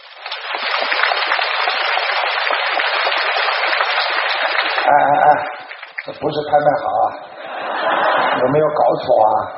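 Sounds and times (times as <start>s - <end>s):
audience applause in a meeting hall: 0.0s - 6.1s
speech: 4.9s - 5.5s, 6.1s - 7.3s, 7.9s - 9.5s
laughter: 6.8s - 9.5s.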